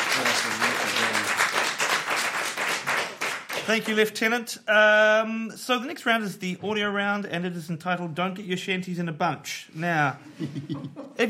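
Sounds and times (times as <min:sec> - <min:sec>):
audience round of applause: 0:00.0 - 0:04.0
speech: 0:03.7 - 0:11.2
laughter: 0:10.2 - 0:11.2.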